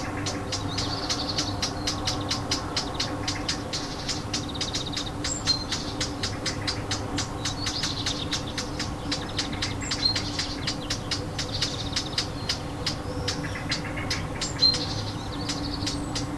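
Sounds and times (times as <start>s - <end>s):
warbler alarm call: 0.0s - 16.3s.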